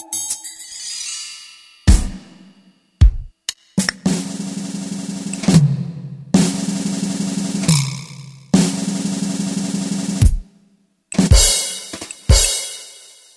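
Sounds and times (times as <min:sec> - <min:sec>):
keyboard standard drum kit: 0:01.9 - 0:10.5, 0:11.1 - 0:13.0.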